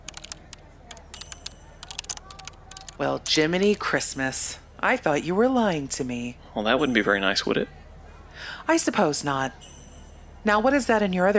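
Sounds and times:
typing on a computer keyboard: 0.0 - 3.9
speech: 3.0 - 7.8, 8.4 - 9.7, 10.4 - 11.3.

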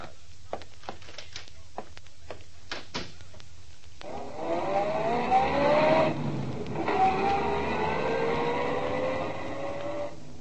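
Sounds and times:
car driving: 4.0 - 10.3.

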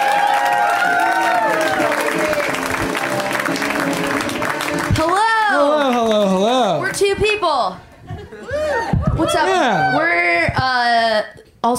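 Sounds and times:
comedy audience applauding and cheering: 0.0 - 7.0
speech: 7.1 - 7.8, 9.2 - 11.7.

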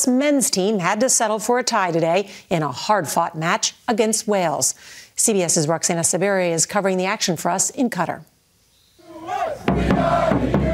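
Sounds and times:
speech: 0.0 - 8.3, 9.5 - 10.6
football fans cheering: 9.0 - 10.7.

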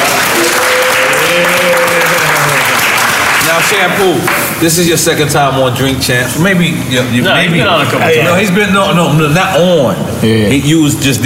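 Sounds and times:
audience applause and cheering welcoming a guest: 0.0 - 4.2
speech: 3.7 - 11.2.

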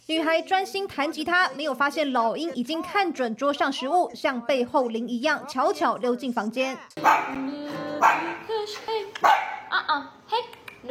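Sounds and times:
speech: 0.1 - 10.8
dog barking: 7.0 - 7.4, 8.0 - 8.4, 9.2 - 9.7.

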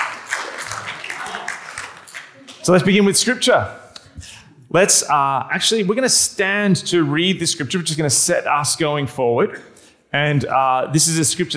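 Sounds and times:
audience applauding: 0.0 - 3.0
speech: 2.6 - 11.5.

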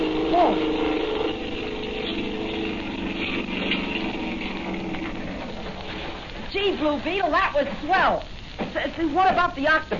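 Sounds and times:
motorboat engine starting and approaching: 0.0 - 6.2
speech: 6.7 - 9.9.

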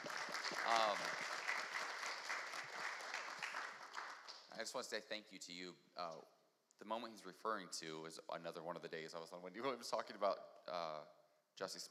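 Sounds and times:
audience applause: 0.0 - 4.4
speech: 4.6 - 11.8.

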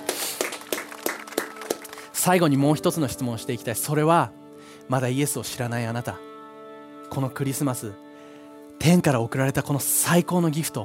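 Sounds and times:
audience applause: 0.0 - 2.2
speech: 2.2 - 6.3, 7.1 - 8.0, 8.8 - 10.8.

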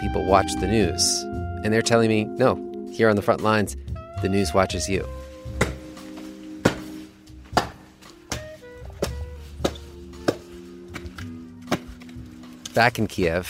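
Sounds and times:
speech: 0.1 - 5.2, 12.8 - 13.4
small axe chopping wood: 5.6 - 12.2.

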